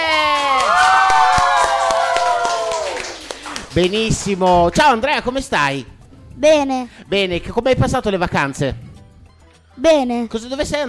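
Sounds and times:
audience cheering: 0.0s - 3.9s
audience applause: 0.0s - 4.5s
speech: 3.8s - 8.8s, 9.8s - 10.8s.

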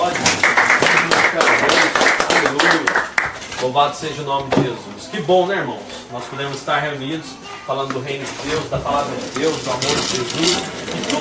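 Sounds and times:
audience clapping: 0.0s - 3.5s
speech: 3.6s - 11.1s.

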